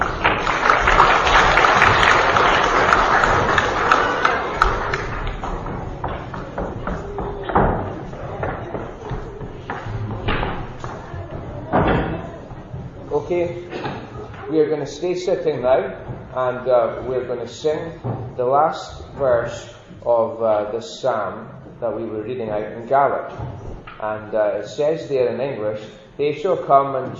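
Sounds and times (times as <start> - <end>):
audience clapping for children: 0.0 - 7.0
faint murmurs: 0.0 - 27.1
speech: 14.7 - 27.1.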